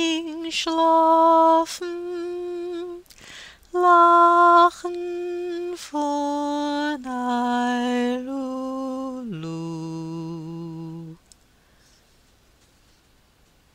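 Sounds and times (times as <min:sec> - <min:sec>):
tenor singing: 0:00.0 - 0:03.0, 0:03.7 - 0:11.2.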